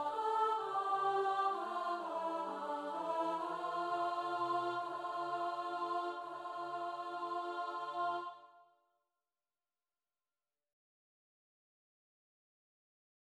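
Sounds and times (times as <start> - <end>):
alto voice singing: 0.0 - 8.6.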